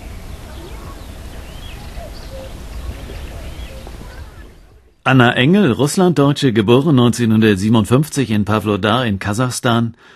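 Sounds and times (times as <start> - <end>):
birds singing in the early morning: 0.0 - 5.4
speech: 5.0 - 10.1.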